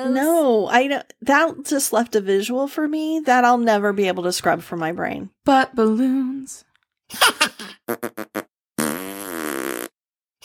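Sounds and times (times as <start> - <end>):
speech: 0.0 - 8.5
string of sputtering popping and buzzing farts: 7.9 - 10.4.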